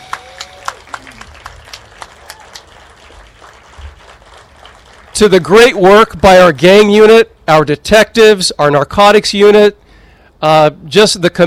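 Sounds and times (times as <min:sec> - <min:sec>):
audience applause: 0:00.0 - 0:05.8
speech: 0:05.2 - 0:09.8, 0:10.4 - 0:11.4.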